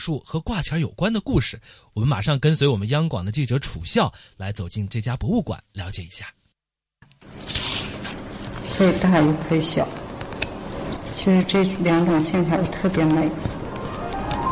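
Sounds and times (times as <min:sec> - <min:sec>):
speech: 0:00.0 - 0:06.4, 0:08.8 - 0:10.0, 0:11.2 - 0:13.6
scissors cutting paper: 0:07.2 - 0:14.4.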